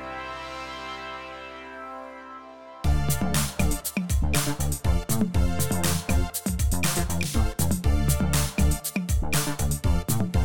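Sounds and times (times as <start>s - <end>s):
funk music: 2.8s - 10.3s.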